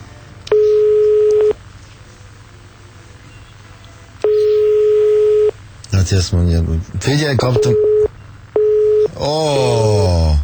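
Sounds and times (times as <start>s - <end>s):
telephone ringing tones of an outgoing call: 0.5s - 1.6s, 4.2s - 5.6s, 7.3s - 9.1s
speech: 6.0s - 7.9s, 9.2s - 9.9s.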